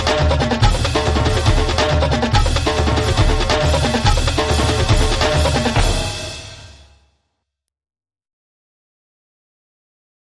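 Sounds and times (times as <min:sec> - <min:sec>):
drums: 0:00.0 - 0:07.0.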